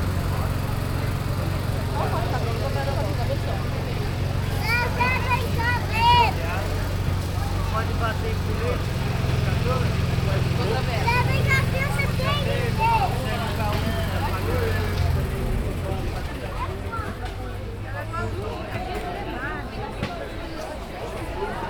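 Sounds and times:
market ambience in Brazil: 0.0s - 21.6s.

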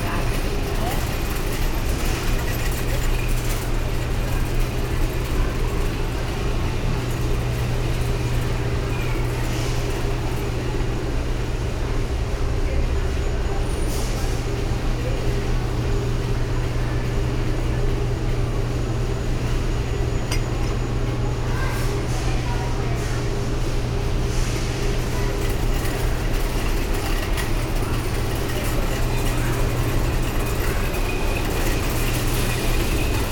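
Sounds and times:
supermarket ambience in Brazil: 0.0s - 33.3s.

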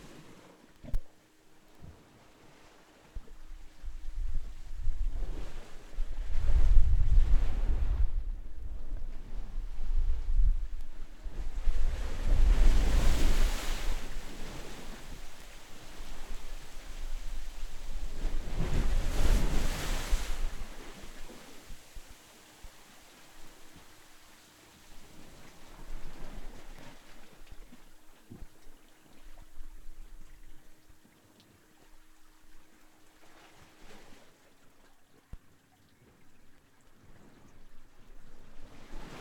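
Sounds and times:
waves in Curacao: 0.0s - 39.1s.

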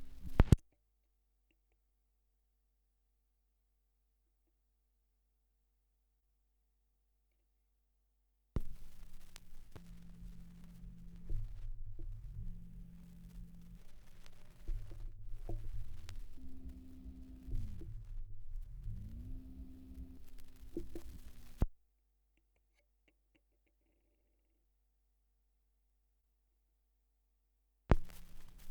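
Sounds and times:
78rpm gramophone record surface noise: 0.0s - 0.6s, 8.6s - 21.8s, 27.9s - 28.6s.

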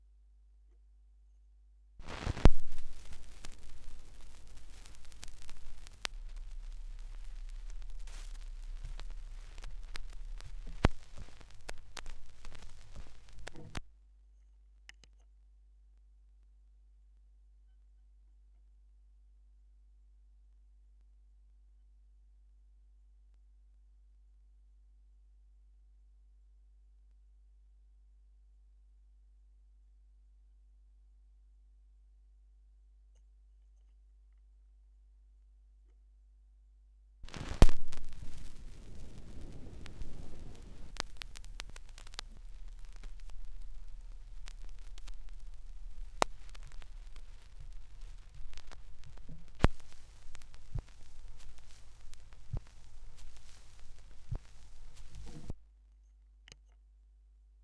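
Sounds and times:
vinyl record noise: 2.0s - 13.9s, 37.2s - 55.6s.

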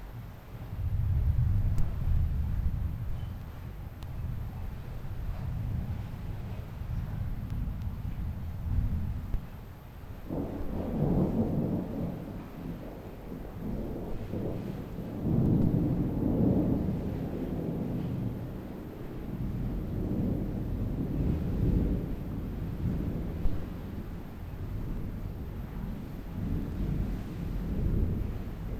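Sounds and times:
thunderstorm in Curacao: 0.0s - 28.7s.

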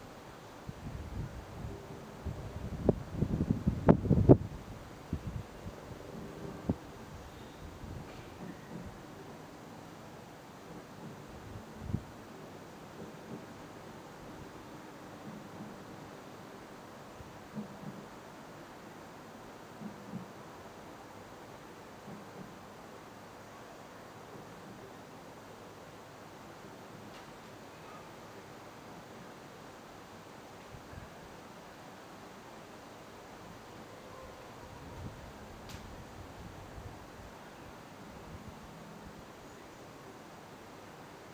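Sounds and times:
outdoor ambience: 0.0s - 41.3s.

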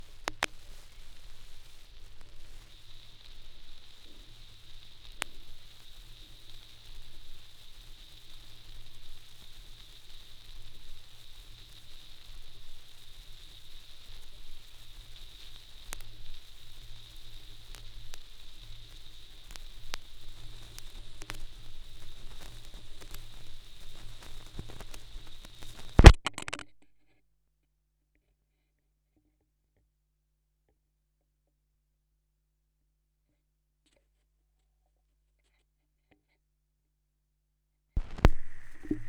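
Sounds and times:
vinyl record noise: 0.0s - 26.9s, 38.0s - 39.0s.

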